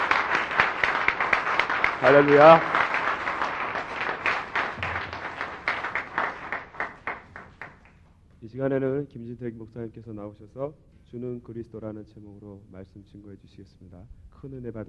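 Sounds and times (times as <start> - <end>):
audience applauding: 0.0 - 8.0
speech: 2.0 - 2.8, 8.6 - 14.8.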